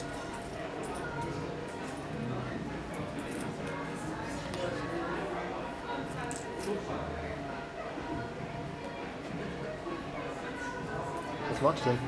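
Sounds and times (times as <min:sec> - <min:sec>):
murmur of many voices in Ulm: 0:00.0 - 0:12.0.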